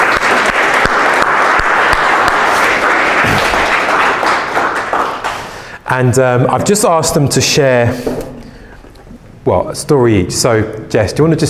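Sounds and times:
round of applause: 0.0s - 5.7s
speech: 5.9s - 8.2s, 9.5s - 11.4s.

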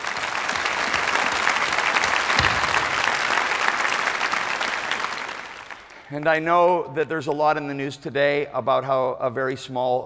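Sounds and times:
audience clapping: 0.0s - 6.8s
speech: 6.1s - 10.0s.

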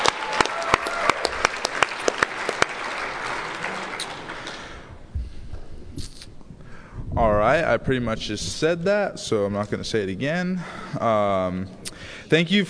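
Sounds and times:
audience applause: 0.0s - 5.0s
speech: 7.2s - 12.6s.

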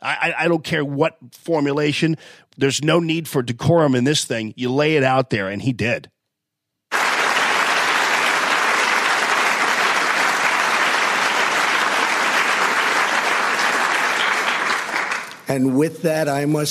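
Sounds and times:
speech: 0.0s - 6.2s, 15.5s - 16.6s
large crowd applauding: 6.9s - 15.8s.

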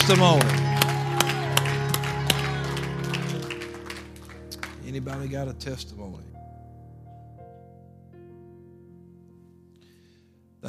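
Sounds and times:
hand claps: 0.0s - 5.3s
speech: 0.1s - 0.6s, 4.9s - 6.3s.

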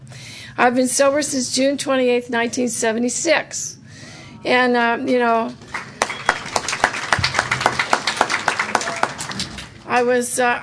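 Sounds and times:
speech: 0.6s - 3.8s, 4.4s - 5.8s, 9.9s - 10.6s
applause at an Alcoholics Anonymous gathering: 5.6s - 10.1s.

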